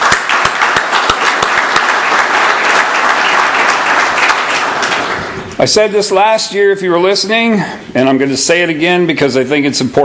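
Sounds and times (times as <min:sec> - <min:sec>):
audience applause: 0:00.0 - 0:05.5
speech: 0:05.6 - 0:10.0.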